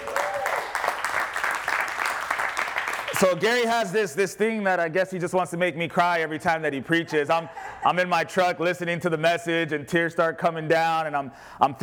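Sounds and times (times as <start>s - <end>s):
audience applauding: 0.0s - 3.6s
speech: 3.2s - 11.8s.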